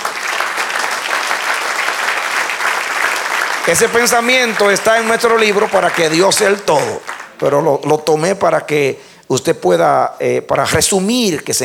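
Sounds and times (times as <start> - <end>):
audience applause: 0.0 - 7.5
speech: 3.7 - 11.6.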